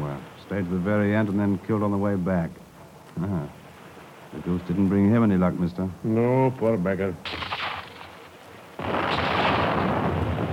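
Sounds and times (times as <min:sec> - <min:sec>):
speech: 0:00.5 - 0:02.6, 0:03.2 - 0:03.6, 0:04.3 - 0:07.4
sea mine exploding after gunfire: 0:07.2 - 0:10.5.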